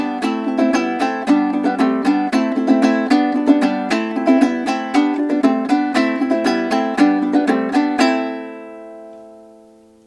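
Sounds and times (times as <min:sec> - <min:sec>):
lyre with oak bridge versus amber bridge: 0:00.0 - 0:10.0.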